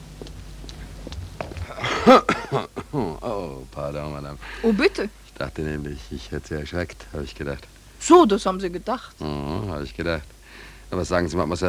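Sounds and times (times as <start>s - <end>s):
man coughing while walking along the Scheldekai: 1.6s - 3.2s
speech: 2.1s - 11.6s.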